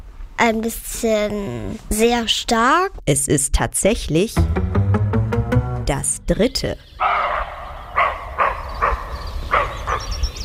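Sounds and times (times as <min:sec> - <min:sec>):
speech: 0:00.4 - 0:04.8, 0:05.9 - 0:07.0
roe deer barking: 0:07.0 - 0:10.0.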